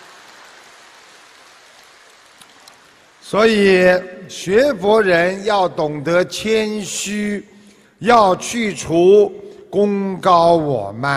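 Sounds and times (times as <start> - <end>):
audience applause: 0.0 - 3.3
speech: 3.3 - 11.1.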